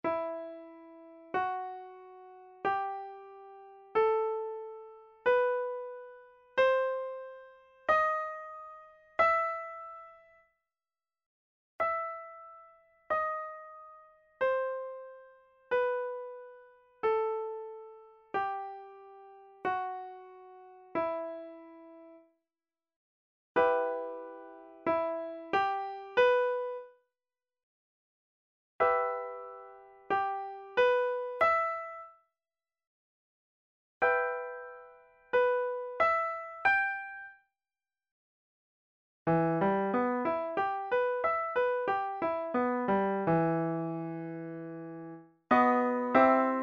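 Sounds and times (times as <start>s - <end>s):
piano exercise on the E harmonic minor scale: 0.0s - 10.4s, 11.8s - 22.2s, 23.6s - 26.9s, 28.8s - 32.1s, 34.0s - 37.4s, 39.3s - 46.6s.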